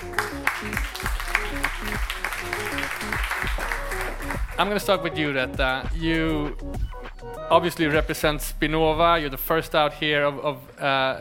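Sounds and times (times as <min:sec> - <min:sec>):
round of applause: 0:00.0 - 0:04.8
speech: 0:04.6 - 0:06.9, 0:07.5 - 0:11.1.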